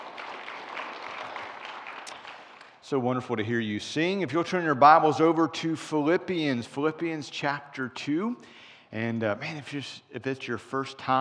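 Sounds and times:
audience applause: 0.0s - 2.8s
speech: 2.9s - 11.1s.

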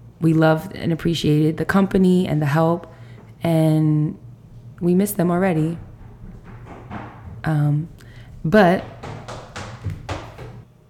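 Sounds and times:
speech: 0.2s - 4.2s, 4.8s - 5.9s, 7.4s - 9.0s
footsteps: 4.4s - 10.7s.

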